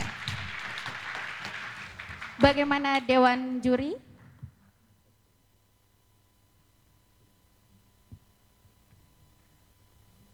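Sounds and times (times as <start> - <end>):
crowd applause: 0.0 - 3.5
speech: 2.4 - 4.1.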